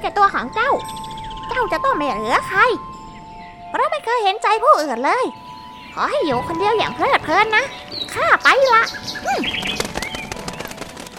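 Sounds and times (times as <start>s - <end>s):
speech: 0.0s - 3.0s, 3.7s - 5.4s, 6.0s - 9.9s
bird chirps: 0.2s - 11.1s
bird wings flapping as it takes off: 6.4s - 11.1s.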